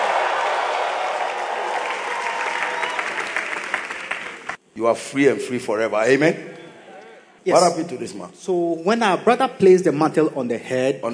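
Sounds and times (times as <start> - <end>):
audience clapping: 0.0 - 4.6
speech: 4.8 - 6.6, 7.4 - 11.1.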